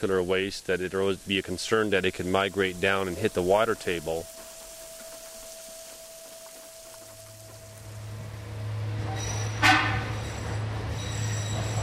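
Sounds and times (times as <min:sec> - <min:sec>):
speech: 0:00.0 - 0:04.4
underground tunnel tram running on rails: 0:01.1 - 0:11.8
metallic screech of wheels on rail: 0:02.4 - 0:11.8.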